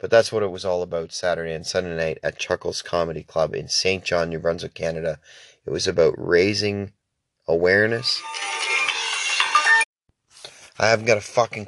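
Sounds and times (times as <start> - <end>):
speech: 0.0 - 8.6, 10.8 - 11.6
phone ringtone for incoming call: 8.2 - 9.9.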